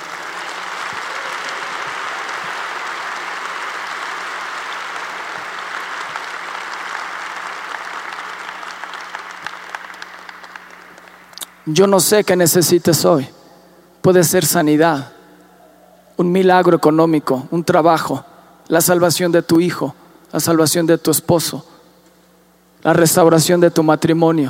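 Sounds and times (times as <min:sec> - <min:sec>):
applause: 0:00.0 - 0:11.9
speech: 0:11.7 - 0:13.4, 0:14.0 - 0:15.2, 0:16.2 - 0:21.7, 0:22.8 - 0:24.4.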